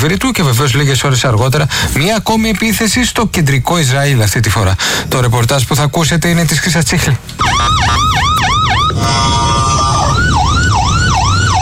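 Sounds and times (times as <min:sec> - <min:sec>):
speech: 0:00.0 - 0:08.0
air raid alarm siren: 0:07.4 - 0:11.5.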